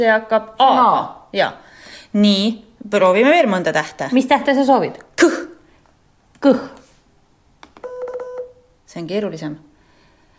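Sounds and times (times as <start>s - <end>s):
speech: 0.0s - 5.4s, 6.4s - 6.8s, 9.0s - 9.7s
Morse code letter beeps: 7.8s - 8.6s.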